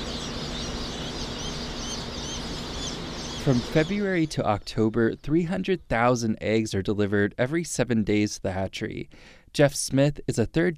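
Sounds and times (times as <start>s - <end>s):
thousands of freshly hatched chicks peeping at Cackle Hatchery in Lebanon, Missouri: 0.0s - 5.9s
speech: 3.4s - 10.7s.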